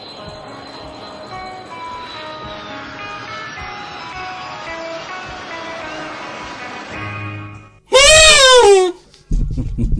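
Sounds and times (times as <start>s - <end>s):
Argentine vuvuzela blast, worn from heavy playing: 7.9s - 8.9s.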